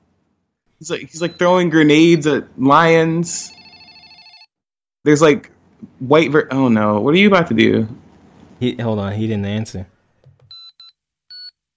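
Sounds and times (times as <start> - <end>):
speech: 0.8 - 3.6, 5.0 - 8.0, 8.6 - 9.9
phone speed-dialing beeps: 10.5 - 11.5.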